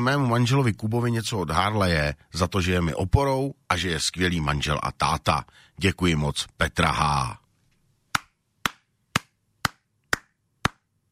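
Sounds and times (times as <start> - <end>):
speech: 0.0 - 7.4
person clapping: 8.1 - 11.1.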